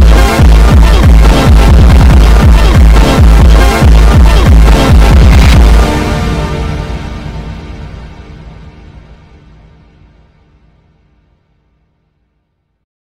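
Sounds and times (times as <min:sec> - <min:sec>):
bass-boosted funk music: 0:00.0 - 0:08.6.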